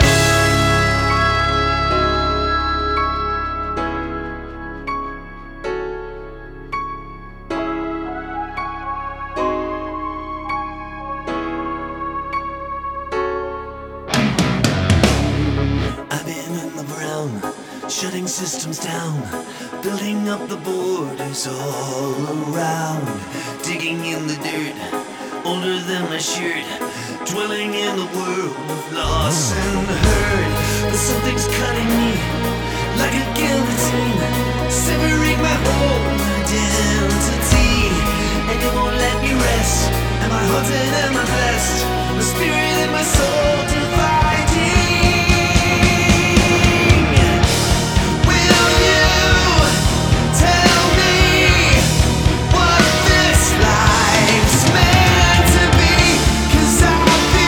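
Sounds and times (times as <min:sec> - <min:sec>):
dark melody: 0:00.0 - 0:57.4.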